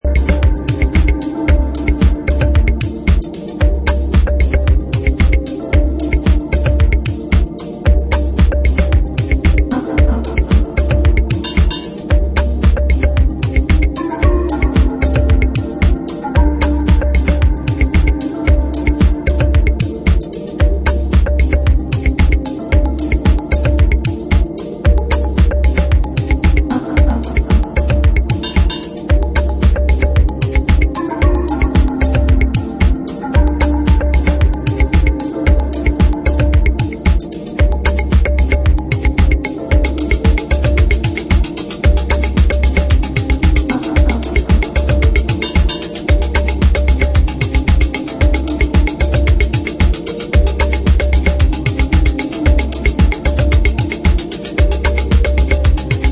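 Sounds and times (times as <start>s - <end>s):
marimba: 0.0s - 56.1s.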